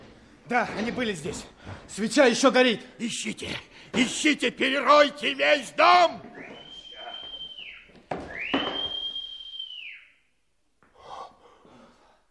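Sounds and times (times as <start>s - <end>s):
speech: 0.5s - 6.4s
two whistles as a warning signal: 6.2s - 10.4s.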